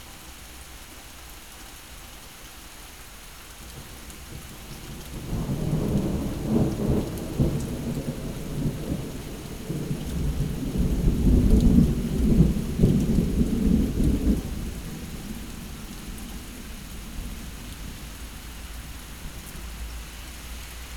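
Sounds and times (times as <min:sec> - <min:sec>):
thunderstorm: 0:04.4 - 0:19.9.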